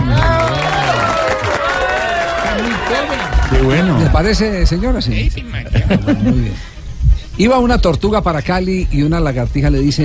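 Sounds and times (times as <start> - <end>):
audience applause: 0.0 - 4.3
speech: 3.0 - 6.7, 7.4 - 10.0
laughter: 5.5 - 7.7.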